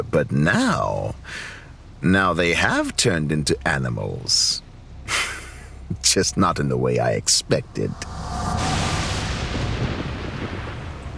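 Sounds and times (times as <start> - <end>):
speech: 0.0 - 5.3, 5.9 - 8.7
thunder crack and rumble: 8.0 - 11.1.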